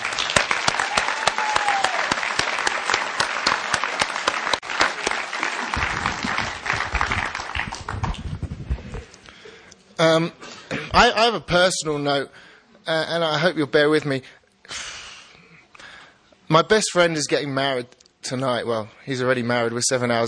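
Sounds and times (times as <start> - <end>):
convention audience applauding: 0.0 - 8.5
speech: 10.0 - 14.8, 16.5 - 20.2.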